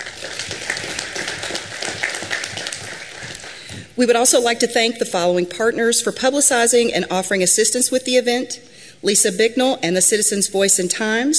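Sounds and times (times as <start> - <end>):
audience applause: 0.0 - 3.9
speech: 4.0 - 11.3.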